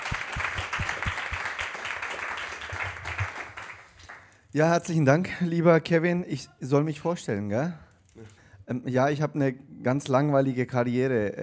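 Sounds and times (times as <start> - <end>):
audience applause: 0.0 - 4.4
speech: 4.5 - 7.8, 8.7 - 11.4.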